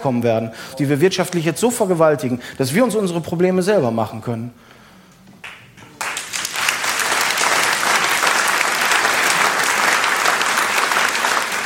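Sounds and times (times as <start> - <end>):
speech: 0.0 - 4.8
audience applause: 5.4 - 11.6.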